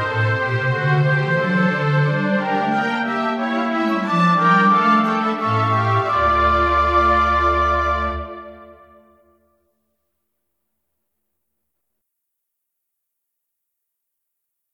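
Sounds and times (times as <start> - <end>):
instrumental music: 0.0 - 9.7.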